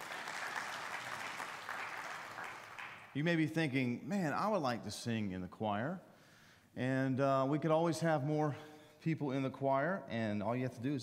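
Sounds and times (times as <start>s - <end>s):
audience round of applause: 0.0s - 3.2s
speech: 3.1s - 6.1s, 6.8s - 11.0s.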